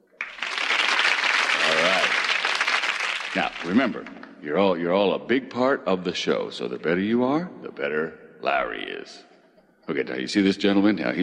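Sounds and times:
studio audience applause: 0:00.0 - 0:04.2
speech: 0:03.4 - 0:09.3, 0:09.9 - 0:11.2.

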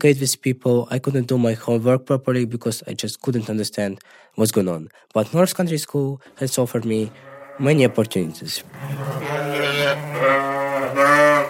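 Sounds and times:
speech: 0:00.0 - 0:11.4
sheep bleating in the barn of the North Country School: 0:07.1 - 0:11.4.

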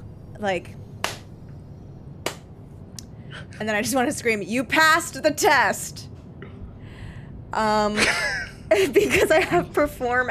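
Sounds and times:
low hum: 0:00.0 - 0:10.2
speech: 0:00.4 - 0:00.8, 0:03.5 - 0:06.1, 0:07.5 - 0:10.2
single hand clap: 0:01.0 - 0:01.3, 0:02.2 - 0:02.5.

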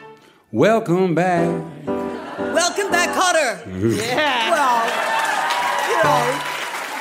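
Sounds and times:
speech: 0:00.6 - 0:01.7, 0:02.6 - 0:05.1
laughter: 0:02.0 - 0:05.2
crowd clapping rhythmically: 0:03.9 - 0:07.0.

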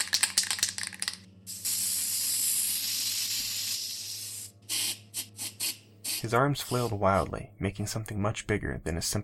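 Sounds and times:
spray paint can rattling: 0:00.0 - 0:06.8
spray paint can spraying: 0:01.5 - 0:07.0
speech: 0:06.2 - 0:09.2.

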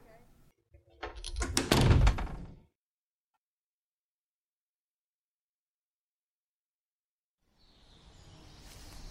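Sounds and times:
door being closed: 0:00.8 - 0:02.6.

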